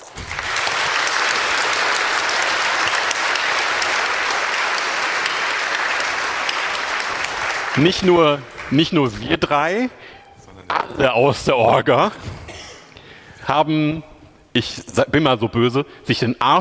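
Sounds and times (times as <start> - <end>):
audience applause: 0.0 - 9.7
speech: 7.8 - 12.3, 13.5 - 16.5.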